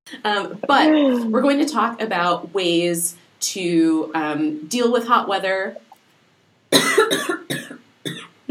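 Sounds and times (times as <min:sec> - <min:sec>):
speech: 0:00.2 - 0:05.8, 0:06.7 - 0:08.4
coughing from a scratchy throat: 0:06.7 - 0:08.4.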